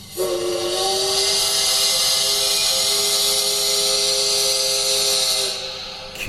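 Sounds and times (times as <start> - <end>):
model train steam whistle: 0.0 - 6.2.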